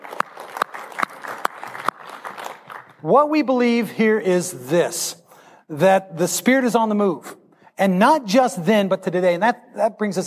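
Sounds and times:
audience applause: 0.0 - 3.0
speech: 3.0 - 10.2.

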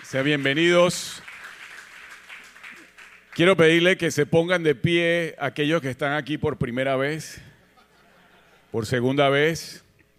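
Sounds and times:
crowd applauding: 0.0 - 3.6
speech: 0.1 - 1.3, 3.4 - 7.5, 8.7 - 9.8.

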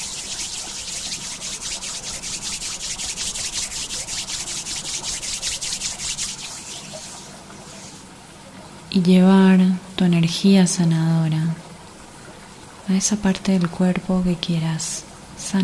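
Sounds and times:
rubbing palms of hands together: 0.0 - 8.1
speech: 8.9 - 11.6, 12.9 - 15.6.

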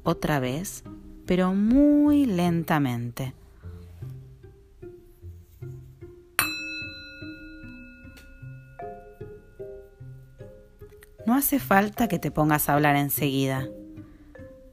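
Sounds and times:
speech: 0.0 - 3.4, 11.3 - 13.8
bell ringing: 6.4 - 10.6.

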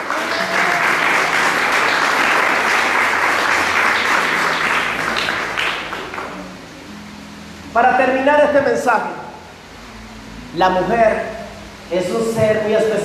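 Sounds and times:
audience applause: 0.0 - 6.6
speech: 7.8 - 9.2, 10.6 - 11.3, 11.9 - 13.0.

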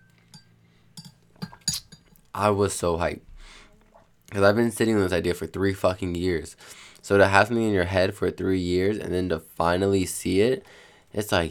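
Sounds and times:
glass clinking as it is handled: 0.0 - 2.2
faint low hum: 0.0 - 11.4
speech: 2.4 - 3.3, 4.3 - 11.4.

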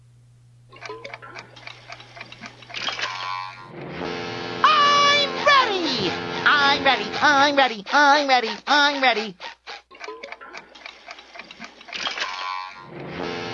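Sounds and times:
smart speaker clock-like ticking: 0.8 - 3.9, 6.4 - 13.1
smart speaker alarm cartoonish voice and music: 4.6 - 10.4
speech: 7.2 - 9.5.

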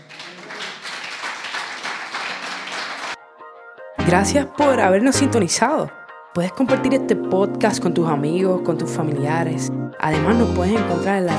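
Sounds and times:
audience applause: 0.0 - 3.2
speech: 4.0 - 11.3.

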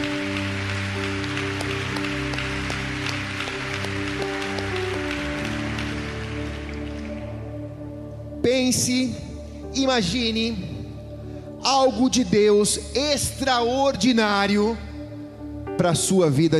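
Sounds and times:
audience applauding loudly: 0.0 - 7.8
sustained keyboard chords: 0.0 - 16.5
speech: 8.5 - 10.7, 11.6 - 14.8, 15.8 - 16.5.

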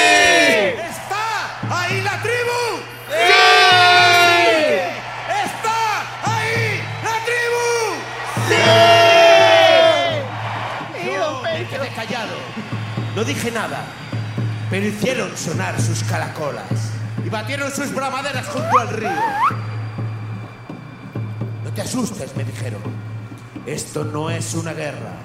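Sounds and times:
tribe crowd shouting and whooping in response: 0.0 - 15.6, 18.2 - 20.8
speech: 13.5 - 14.0, 14.7 - 19.6, 21.8 - 25.2.

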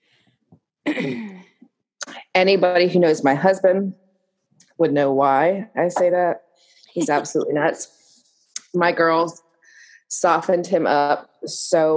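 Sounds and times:
speech: 0.9 - 1.4, 2.4 - 4.0, 4.8 - 8.0, 8.7 - 9.4, 10.1 - 11.9
person coughing: 0.9 - 1.6.

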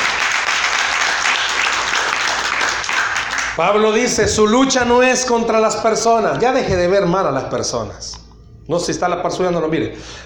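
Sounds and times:
audience applause: 0.0 - 3.6
speech: 3.6 - 10.2.

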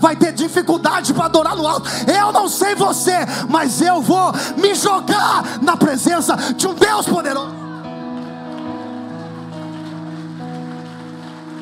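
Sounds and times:
speech: 0.0 - 7.7
crowd clapping: 7.1 - 11.6.

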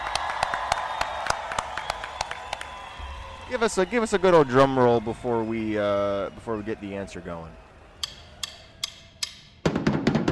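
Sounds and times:
audience round of applause: 0.0 - 7.8
speech: 3.5 - 7.6.

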